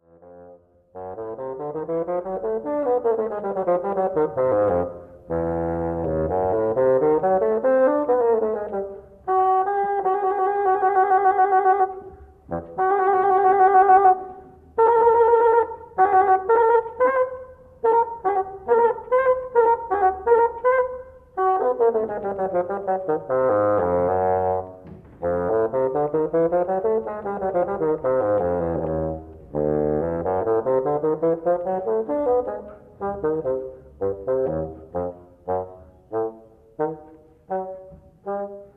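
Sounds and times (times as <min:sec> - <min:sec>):
bassoon solo: 0:00.0 - 0:38.7.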